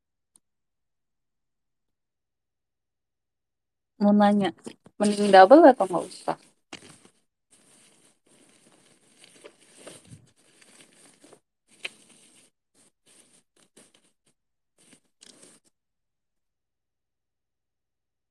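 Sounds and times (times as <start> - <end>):
speech: 4.0 - 6.5
packaging crinkling as a parcel is wrapped: 5.0 - 14.2, 14.8 - 15.6.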